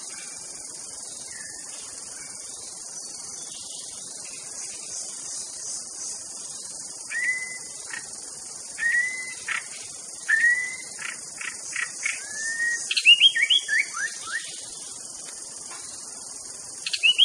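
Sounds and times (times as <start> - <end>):
insect hiss: 0.0 - 17.2
white-rumped shama whistled song: 7.1 - 7.7, 8.8 - 14.7, 16.8 - 17.2.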